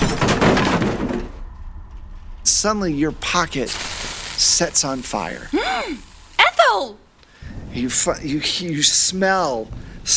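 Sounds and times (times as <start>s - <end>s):
table being flipped over: 0.0s - 1.4s
speech: 2.6s - 6.1s, 6.7s - 7.0s, 7.8s - 10.1s.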